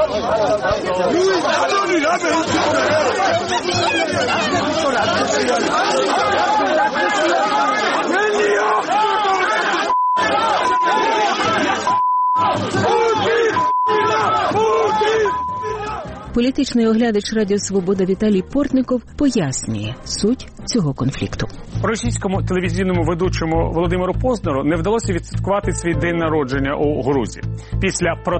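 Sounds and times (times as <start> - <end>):
speech: 0.0 - 7.5, 16.4 - 28.3
crowd of protesters shouting outside a hotel: 0.0 - 16.3
short high beeps: 15.3 - 15.8.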